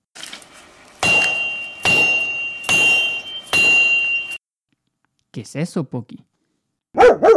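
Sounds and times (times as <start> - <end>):
hammering on a house under construction: 1.0 - 4.4
speech: 5.4 - 6.3.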